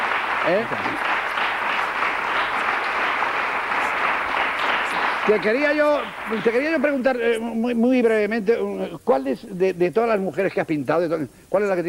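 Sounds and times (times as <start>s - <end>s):
large crowd applauding: 0.0s - 7.4s
speech: 0.4s - 1.2s, 5.3s - 11.8s.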